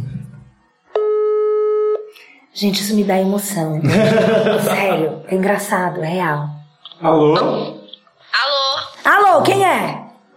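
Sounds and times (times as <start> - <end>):
telephone line ringing tone as a call is placed: 1.0 - 2.0
speech: 2.6 - 7.8, 9.4 - 10.0
laughter: 3.8 - 5.1.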